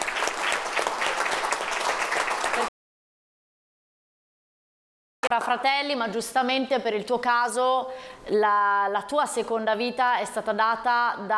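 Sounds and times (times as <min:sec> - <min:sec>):
audience applause: 0:00.0 - 0:02.7
speech: 0:05.3 - 0:11.3.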